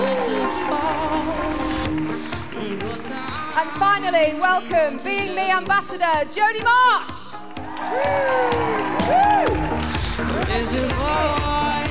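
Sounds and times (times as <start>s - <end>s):
whoops and shouts: 0.0s - 1.7s, 7.6s - 9.8s
studio audience applauding: 0.0s - 3.5s, 7.4s - 11.0s
speech: 3.6s - 7.1s, 7.8s - 9.8s, 10.6s - 11.8s.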